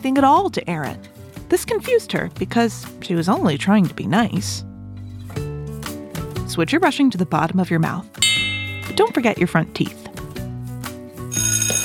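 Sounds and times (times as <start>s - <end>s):
speech: 0.0s - 4.7s, 6.5s - 8.3s, 9.0s - 10.0s
school bell ringing for recess: 8.2s - 9.5s.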